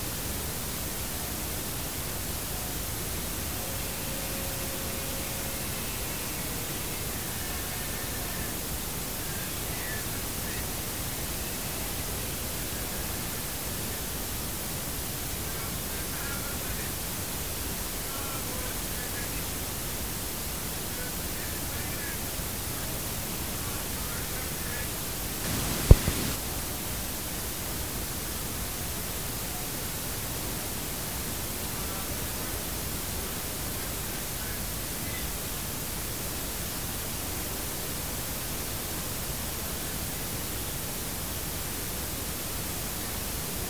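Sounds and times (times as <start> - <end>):
compressed blank tape hiss: 0.0 - 43.6
electronic blip: 25.4 - 26.4.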